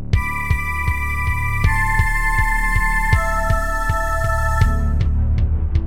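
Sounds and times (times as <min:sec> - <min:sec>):
FluidSynth software synthesizer music: 0:00.1 - 0:05.7.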